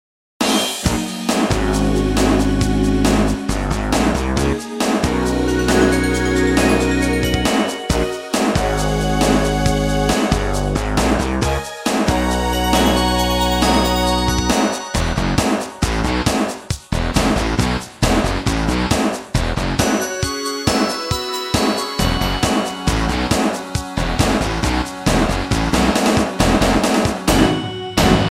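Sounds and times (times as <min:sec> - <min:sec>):
rock music: 0:00.4 - 0:28.2.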